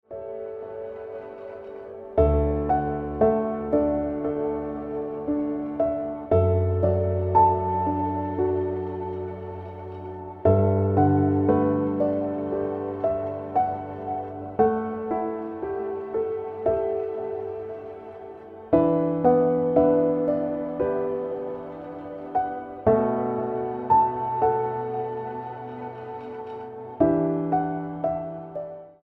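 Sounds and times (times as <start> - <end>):
piano ringtone music: 0.1 - 29.0.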